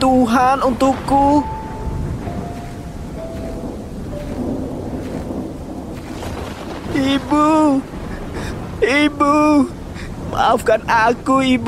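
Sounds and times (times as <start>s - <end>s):
speech: 0.0s - 1.6s, 7.0s - 7.9s, 8.8s - 11.6s
heavy rain at sea: 0.0s - 11.6s
rumbling thunder at sea: 0.4s - 11.6s.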